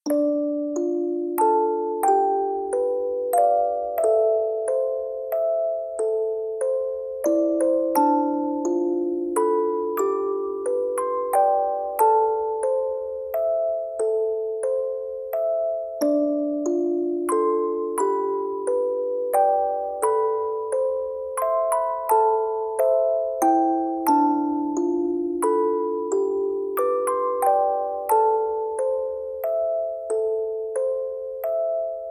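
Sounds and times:
lullaby music: 0.0s - 32.1s.

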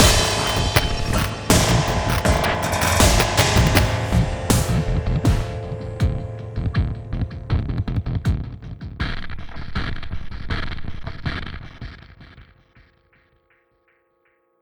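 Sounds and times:
boss stinger music: 0.0s - 10.1s.

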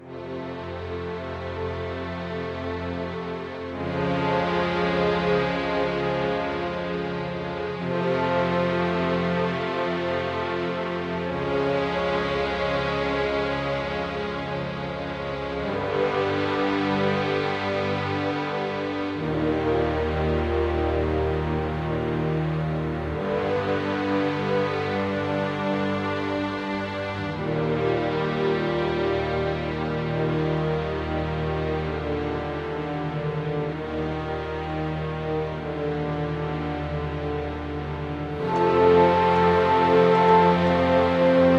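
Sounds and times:
cello loop: 0.0s - 41.5s.

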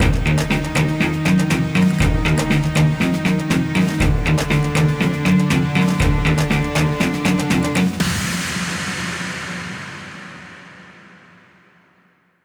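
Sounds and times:
action music ending: 0.0s - 8.4s.

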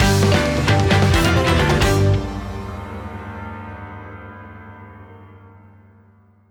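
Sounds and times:
boss battle victory jingle: 0.0s - 3.4s.

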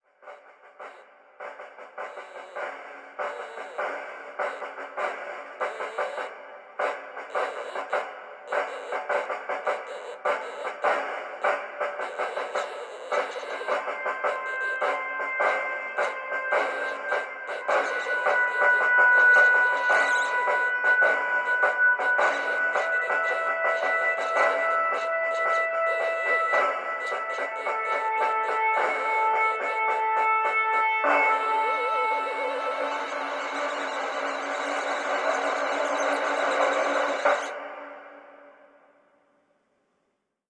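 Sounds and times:
opening music: 2.1s - 38.3s.

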